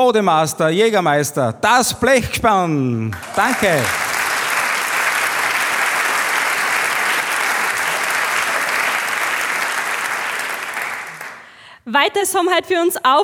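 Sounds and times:
speech: 0:00.0 - 0:04.0, 0:11.9 - 0:13.2
crowd applause: 0:03.0 - 0:11.6.

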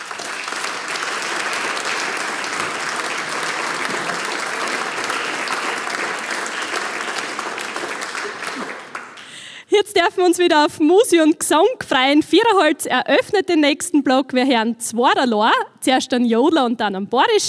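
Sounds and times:
audience applause: 0:00.0 - 0:09.6
speech: 0:09.8 - 0:17.4.

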